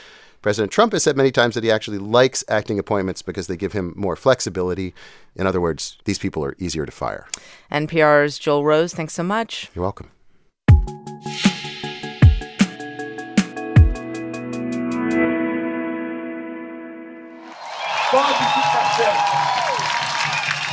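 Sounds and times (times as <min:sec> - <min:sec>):
speech: 0:00.4 - 0:10.2
musical sting of struck tones and sustained chords: 0:11.2 - 0:17.4
crowd cheering and roaring in Brazil: 0:17.4 - 0:20.7.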